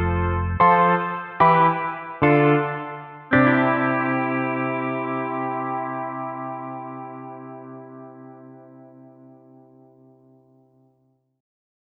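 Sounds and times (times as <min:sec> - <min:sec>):
country music: 0:00.0 - 0:08.6.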